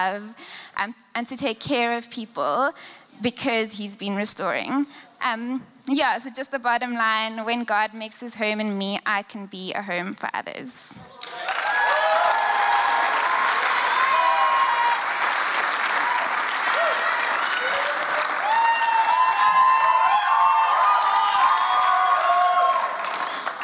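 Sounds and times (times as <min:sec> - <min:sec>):
speech: 0:00.0 - 0:11.5
audience cheering: 0:11.2 - 0:23.6.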